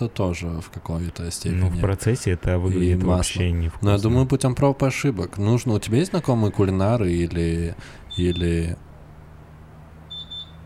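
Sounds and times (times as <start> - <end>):
speech: 0.0 - 8.9
kitchen timer beep signalling dough ready: 10.1 - 10.6.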